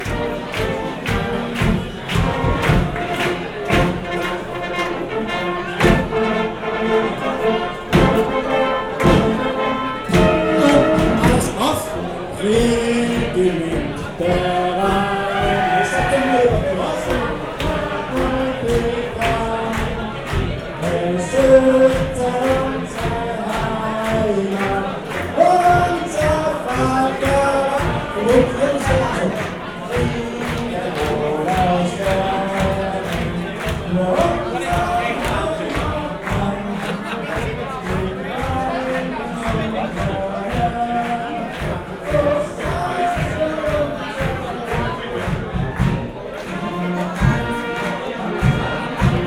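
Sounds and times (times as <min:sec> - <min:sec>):
brass band music: 0:00.0 - 0:49.2.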